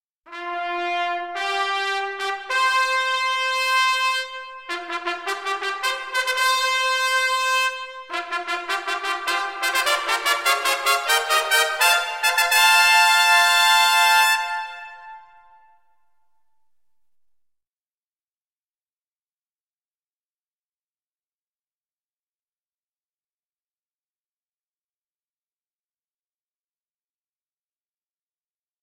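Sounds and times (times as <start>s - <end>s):
royal fanfare: 0.3s - 15.9s.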